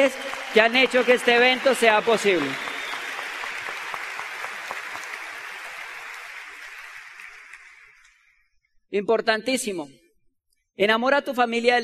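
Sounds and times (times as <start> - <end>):
speech: 0.0 - 2.7, 8.9 - 10.0, 10.8 - 11.8
crowd clapping: 0.0 - 8.3.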